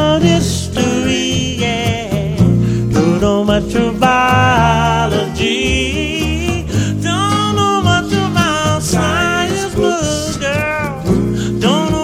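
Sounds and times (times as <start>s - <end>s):
Motown urban vocalists singing: 0.0s - 12.0s.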